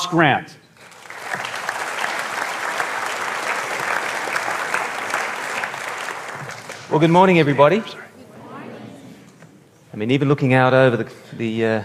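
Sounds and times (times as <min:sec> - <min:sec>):
speech: 0:00.1 - 0:00.6, 0:06.9 - 0:08.0, 0:10.0 - 0:11.8
audience applause welcoming a speaker back to the stage: 0:00.8 - 0:08.1.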